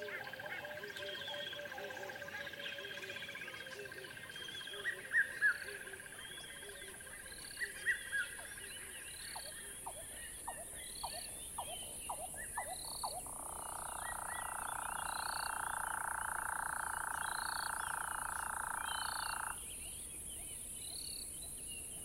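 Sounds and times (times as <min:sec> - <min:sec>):
scattered savanna bird chirps: 0:00.0 - 0:22.0
steady savanna insect buzz in northern South Africa: 0:12.8 - 0:19.8.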